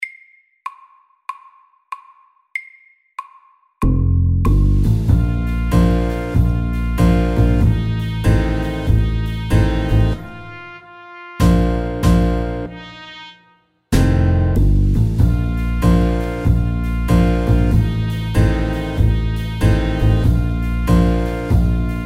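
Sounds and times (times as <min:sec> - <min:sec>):
slow music at 95 bpm: 0:04.6 - 0:22.0.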